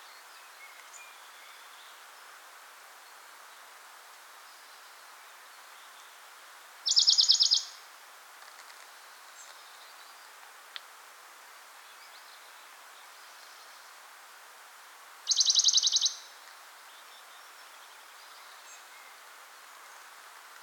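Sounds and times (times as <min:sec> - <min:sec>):
faint click: 0:00.7 - 0:01.0, 0:10.4 - 0:10.9
Western Bonelli's warbler rattling trills: 0:06.9 - 0:07.7, 0:15.3 - 0:16.2.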